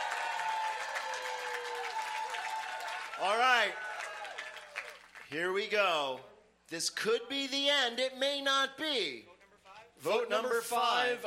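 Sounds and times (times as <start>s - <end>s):
audience applause: 0.0s - 5.3s
speech: 3.2s - 3.9s, 5.3s - 9.4s, 10.0s - 11.2s.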